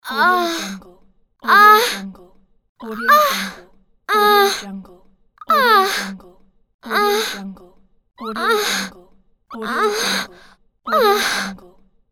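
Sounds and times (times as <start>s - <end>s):
woman moaning: 0.0s - 2.2s, 2.8s - 4.8s, 5.5s - 6.2s, 6.9s - 7.6s, 8.2s - 11.7s.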